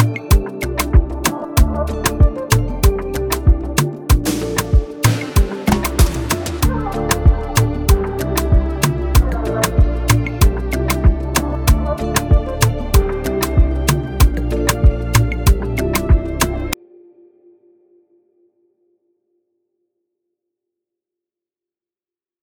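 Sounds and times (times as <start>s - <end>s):
music beat: 0.0s - 16.8s.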